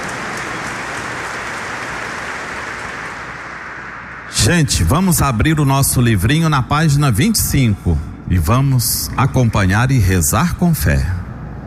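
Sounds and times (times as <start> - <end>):
applause from a large crowd: 0.0 - 4.3
speech: 4.5 - 11.2.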